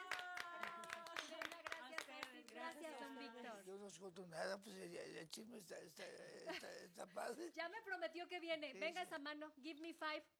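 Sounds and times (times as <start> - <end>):
audience clapping for don Víctor: 0.0 - 3.1
speech: 2.6 - 10.3.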